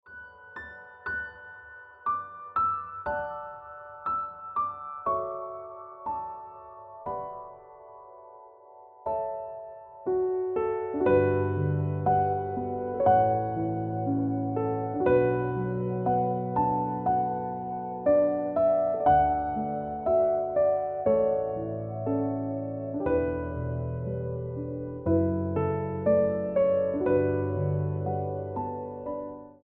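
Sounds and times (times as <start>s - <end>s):
piano music: 0.0s - 29.6s.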